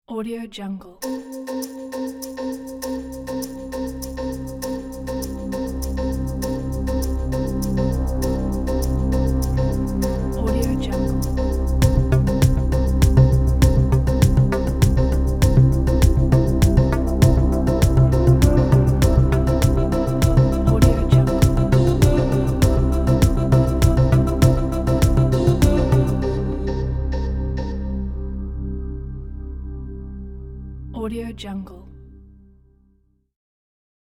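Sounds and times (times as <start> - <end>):
ambient electro advertising music: 1.0 - 31.0.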